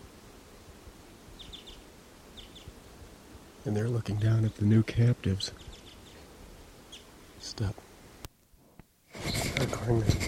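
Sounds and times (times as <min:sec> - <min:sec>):
hiss: 0:00.0 - 0:10.2
male bird singing in trees: 0:01.4 - 0:02.8, 0:05.4 - 0:06.2, 0:06.9 - 0:07.1
speech: 0:03.6 - 0:05.7, 0:07.6 - 0:07.8, 0:09.6 - 0:10.2.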